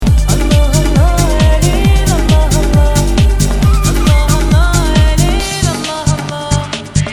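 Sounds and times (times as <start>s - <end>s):
Arabian music: 0.0s - 7.1s.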